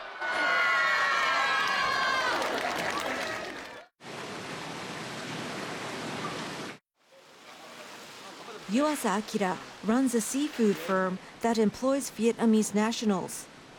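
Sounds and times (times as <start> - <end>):
crowd cheering and shouting at sumo tournament: 0.0 - 3.9
clapping: 0.6 - 3.9
speech: 8.7 - 13.5.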